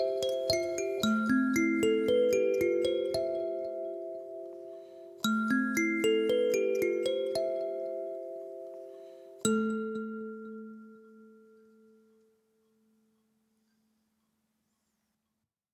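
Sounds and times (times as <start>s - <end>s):
kalimba intro melody: 0.0s - 11.6s.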